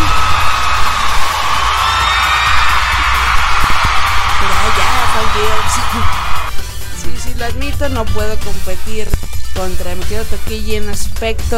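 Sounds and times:
crowd clapping and cheering: 0.0 - 6.5
speech: 7.4 - 11.5.

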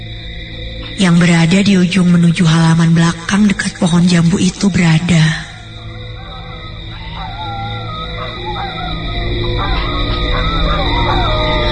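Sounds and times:
steady dense hum of quiet night ambience: 0.0 - 11.7
speech: 1.0 - 5.4
owl hooting: 5.1 - 11.7
wavering drawn-out dog howls: 5.4 - 11.7.

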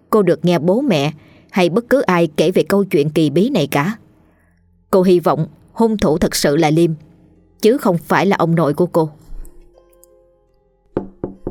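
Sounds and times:
speech: 0.1 - 4.0, 4.9 - 9.2
loud knocking on a door: 11.0 - 11.4.

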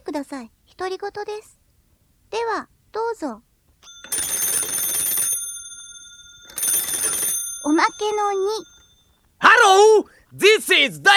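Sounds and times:
speech: 0.2 - 1.6, 2.3 - 3.5, 7.6 - 8.7, 9.4 - 11.1
answering machine beep: 5.9 - 8.9.

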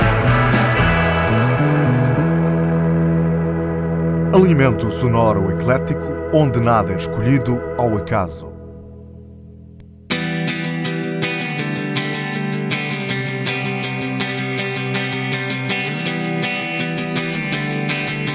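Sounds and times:
heavily distorted electric guitar chords from a distortion pedal: 0.0 - 18.3
speech: 4.4 - 8.5.

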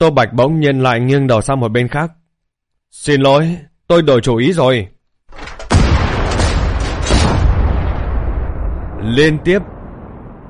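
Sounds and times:
speech: 0.0 - 2.2, 2.9 - 5.4, 9.0 - 9.8
gunshot: 5.3 - 9.1.

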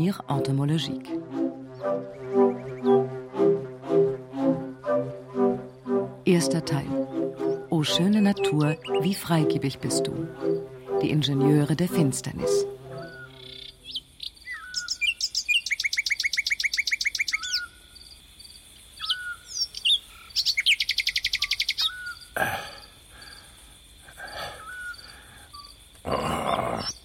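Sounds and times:
speech: 0.0 - 3.0, 6.4 - 7.0, 7.8 - 12.7
nightingale singing: 0.0 - 18.0, 18.9 - 22.4, 24.3 - 27.0.

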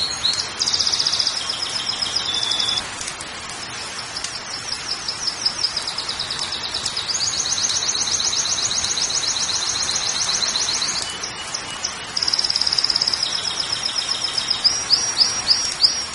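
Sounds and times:
Belgian canary song: 0.0 - 2.8, 3.7 - 16.1.

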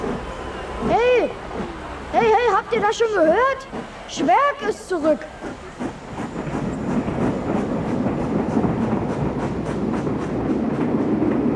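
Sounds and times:
slow local train rattling along: 0.0 - 11.5
speech: 2.2 - 5.6.

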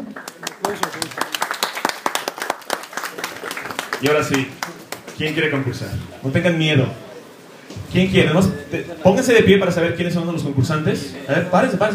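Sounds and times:
audience clapping at a live comic-talk event: 0.0 - 5.9
speech: 0.7 - 1.2, 4.0 - 7.0, 7.9 - 11.9.

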